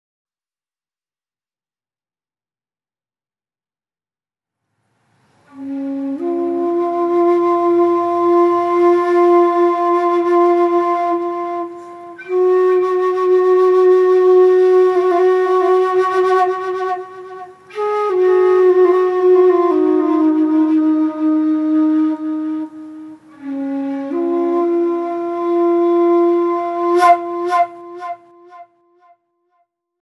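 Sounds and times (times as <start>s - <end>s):
flute: 5.5s - 29.2s.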